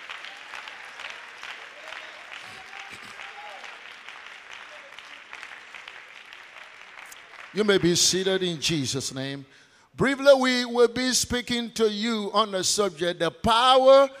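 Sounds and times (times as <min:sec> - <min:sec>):
audience clapping: 0:00.0 - 0:09.1
speech: 0:07.6 - 0:14.1.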